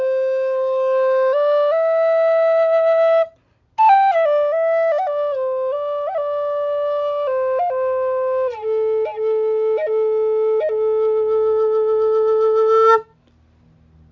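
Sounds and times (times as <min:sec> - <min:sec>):
flute: 0:00.0 - 0:13.2.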